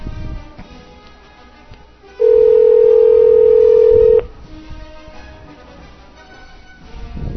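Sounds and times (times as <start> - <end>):
telephone dial tone: 2.2 - 4.3.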